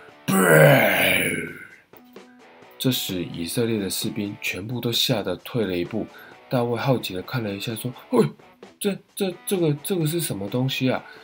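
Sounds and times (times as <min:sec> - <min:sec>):
voice imitating a giant's loud growling roar: 0:00.3 - 0:01.8
speech: 0:00.4 - 0:01.4, 0:02.8 - 0:11.2.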